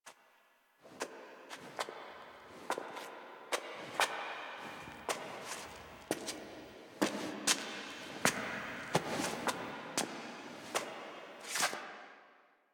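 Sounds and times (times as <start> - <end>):
foley footsteps: 2.5 - 11.8.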